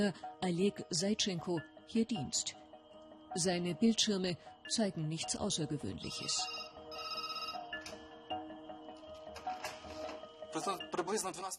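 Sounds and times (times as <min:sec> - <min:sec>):
speech: 0:00.0 - 0:02.6, 0:03.3 - 0:06.7, 0:10.6 - 0:11.5
alarm going off at substation control: 0:06.3 - 0:07.7.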